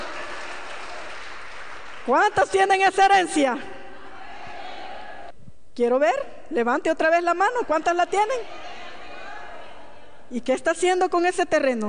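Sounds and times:
audience applauding: 0:00.0 - 0:02.5
speech: 0:02.1 - 0:03.8, 0:05.8 - 0:08.6, 0:10.3 - 0:11.8.

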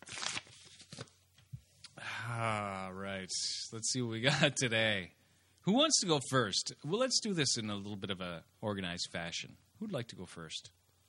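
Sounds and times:
paper envelope torn open: 0:00.0 - 0:01.2
speech: 0:03.3 - 0:10.8.

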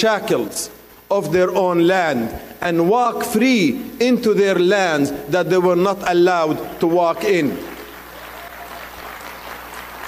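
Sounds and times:
speech: 0:00.0 - 0:07.7
audience applause: 0:07.7 - 0:10.0.

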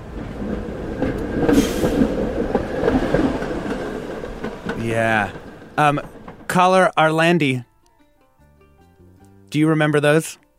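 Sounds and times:
cable car rumbling along its track: 0:00.0 - 0:07.6
cable car clanking and clacking: 0:00.2 - 0:06.8
speech: 0:04.9 - 0:07.7, 0:09.5 - 0:10.4.

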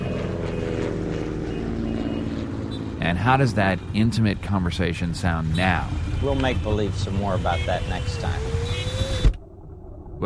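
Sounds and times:
airplane taking off: 0:00.0 - 0:06.0
speech: 0:03.1 - 0:08.8.

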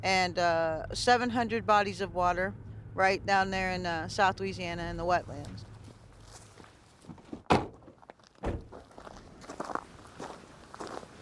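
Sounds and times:
speech: 0:00.0 - 0:05.7
footsteps crunching over gravelly surface to the water's edge: 0:05.3 - 0:11.2.

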